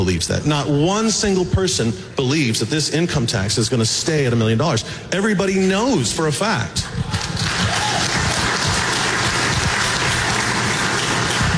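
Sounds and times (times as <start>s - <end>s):
speech: 0.0s - 7.1s
crowd clapping: 6.8s - 11.5s.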